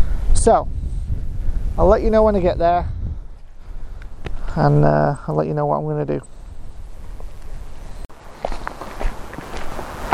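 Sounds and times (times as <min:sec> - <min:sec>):
speech: 0:00.4 - 0:00.8, 0:01.8 - 0:03.0, 0:04.5 - 0:06.3
footsteps of a person walking on a misty trail: 0:06.9 - 0:10.1.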